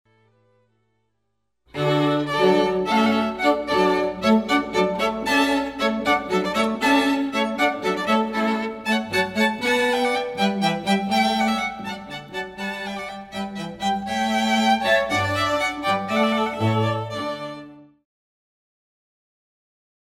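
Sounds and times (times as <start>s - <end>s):
hornpipe tune: 1.8s - 17.7s.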